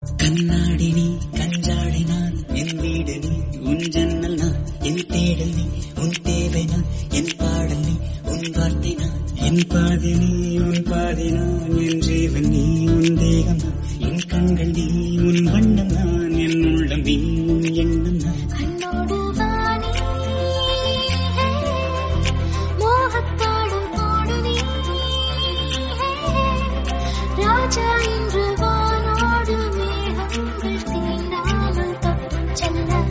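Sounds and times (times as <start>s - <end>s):
Tamil song: 0.0s - 33.0s.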